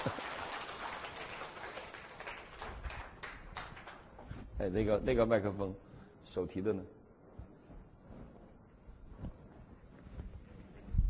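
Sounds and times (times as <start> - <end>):
audience applause: 0.0 - 4.2
speech: 4.6 - 7.0.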